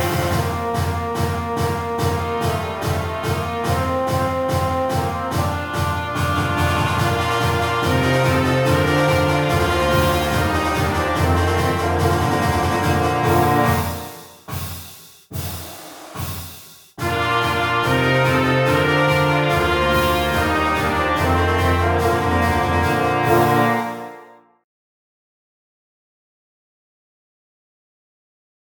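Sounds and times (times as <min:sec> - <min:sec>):
harvest prep fanfare: 0:00.0 - 0:14.4, 0:17.0 - 0:24.4.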